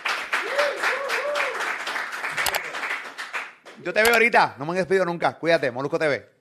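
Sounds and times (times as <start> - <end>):
crowd applause: 0.0 - 3.9
whoops and cheering voices: 0.4 - 1.8
speech: 3.8 - 6.3.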